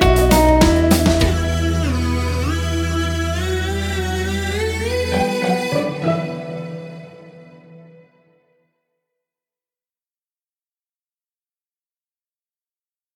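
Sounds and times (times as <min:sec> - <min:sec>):
karaoke singing: 0:00.0 - 0:07.0.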